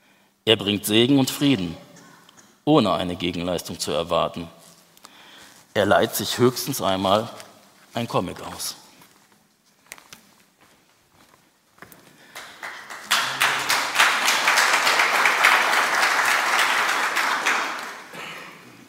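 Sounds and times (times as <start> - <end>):
speech: 0.5 - 1.8, 2.6 - 4.6, 5.8 - 8.8
audience applause: 12.3 - 18.2.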